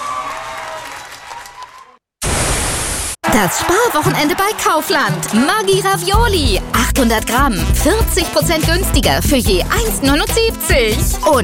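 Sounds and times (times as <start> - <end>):
applause: 0.0 - 2.0, 3.2 - 6.2
speech: 3.4 - 11.4.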